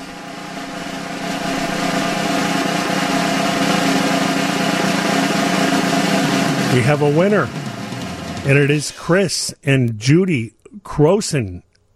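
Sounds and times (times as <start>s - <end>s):
drum roll: 0.0s - 9.4s
speech: 6.8s - 7.7s, 8.4s - 11.7s.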